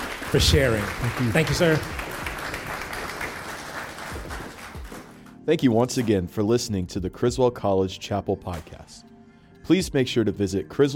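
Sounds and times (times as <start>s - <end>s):
audience applause: 0.0s - 5.1s
speech: 0.3s - 2.0s, 5.5s - 9.1s, 9.7s - 10.9s.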